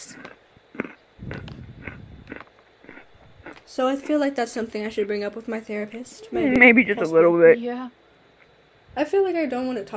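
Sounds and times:
wet crunchy chewing of waffles: 0.0s - 4.2s
speech: 3.7s - 8.0s, 9.0s - 9.9s.

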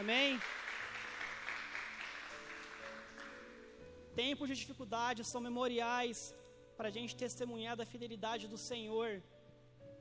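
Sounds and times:
speech: 0.0s - 0.6s, 4.2s - 9.4s
audience applauding: 0.0s - 3.4s.

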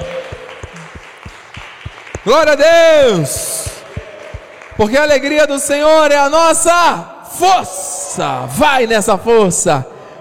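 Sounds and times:
audience applauding: 0.0s - 5.6s
speech: 2.2s - 3.5s, 4.8s - 9.9s.

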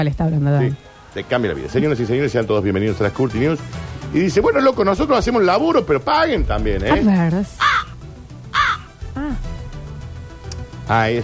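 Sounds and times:
speech: 0.0s - 7.6s, 10.9s - 11.2s
crow cawing sound effect: 7.6s - 9.1s.

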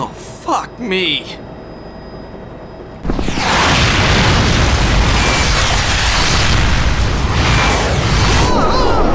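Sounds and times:
speech: 0.5s - 1.5s
missile explosion hitting a helicopter: 3.0s - 9.1s
rumbling debris roar: 3.0s - 9.1s.

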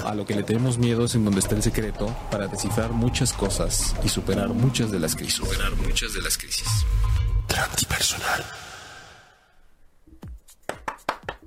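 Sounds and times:
speech: 0.1s - 8.6s
applause: 10.6s - 11.4s.

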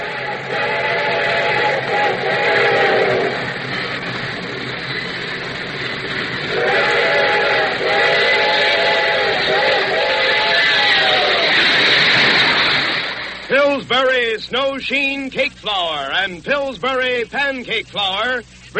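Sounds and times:
train whistle blasts: 0.0s - 3.5s, 6.5s - 11.6s
rumble and hiss of a moving train: 0.0s - 18.7s
speech: 14.8s - 18.7s.

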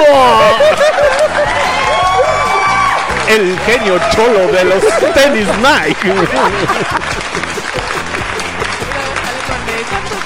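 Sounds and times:
laughter: 0.0s - 1.8s, 3.8s - 9.5s
audience applause and cheering: 0.0s - 10.2s
speech: 3.3s - 7.2s.

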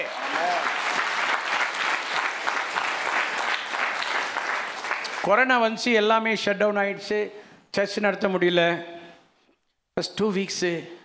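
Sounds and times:
audience applauding: 0.0s - 5.4s
speech: 5.2s - 9.0s, 10.0s - 11.0s.

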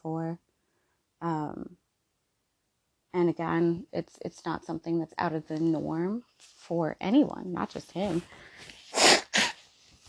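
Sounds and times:
speech: 3.3s - 8.8s
nose blowing: 8.9s - 9.6s.

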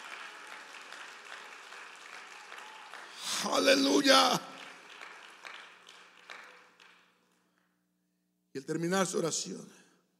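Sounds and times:
audience clapping: 0.0s - 7.7s
speech: 3.4s - 4.5s, 8.6s - 9.8s.

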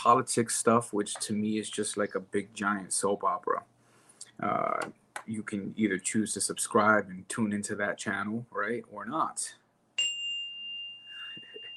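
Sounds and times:
speech: 0.0s - 3.8s, 4.4s - 9.6s
mindfulness chime: 10.0s - 11.7s.

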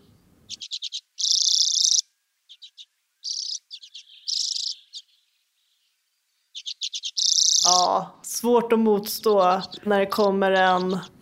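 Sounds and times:
common redpoll song: 0.0s - 11.2s
speech: 7.8s - 11.2s.

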